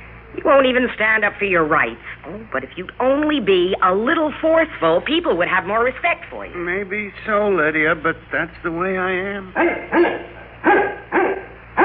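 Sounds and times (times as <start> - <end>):
speech: 0.4 - 11.4
dog barking at the door: 9.6 - 11.8.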